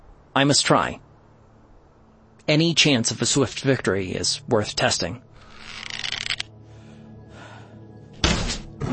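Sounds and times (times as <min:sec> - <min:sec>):
speech: 0:00.4 - 0:01.1, 0:02.5 - 0:05.9
arrow splintering on cavern wall: 0:08.2 - 0:08.7
arrow bouncing off the Hydra's scaly torso: 0:08.2 - 0:08.8.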